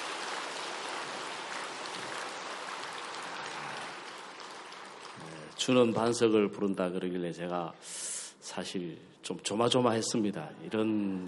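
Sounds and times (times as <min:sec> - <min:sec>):
audience applause: 0:00.0 - 0:06.3
speech: 0:05.6 - 0:11.2.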